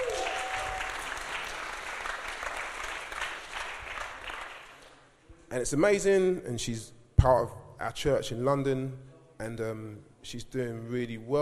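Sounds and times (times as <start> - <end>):
audience applause: 0.0 - 5.0
speech: 5.5 - 11.3.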